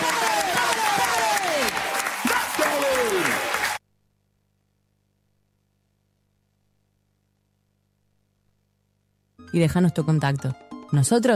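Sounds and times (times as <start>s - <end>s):
audience applause: 0.0s - 3.8s
speech: 9.5s - 11.3s.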